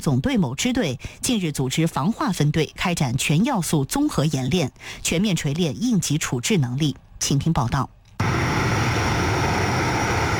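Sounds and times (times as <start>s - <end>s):
speech: 0.0s - 8.4s
fixed-wing anti-submarine patrol aircraft engine drone: 8.2s - 10.3s.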